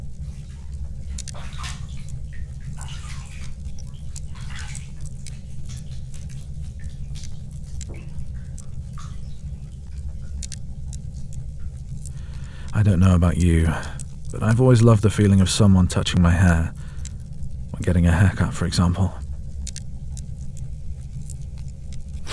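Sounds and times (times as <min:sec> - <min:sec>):
bathwater sloshing and trickling as hair is wetted: 0:00.0 - 0:22.3
water dripping and splashing: 0:00.0 - 0:22.3
speech: 0:12.8 - 0:16.8, 0:17.8 - 0:19.2.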